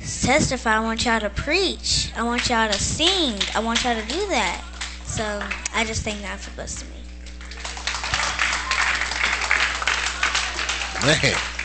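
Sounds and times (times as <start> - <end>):
faint low hum: 0.0 - 11.6
speech: 0.3 - 7.0, 11.0 - 11.5
crowd applauding: 3.4 - 5.9, 7.2 - 11.6.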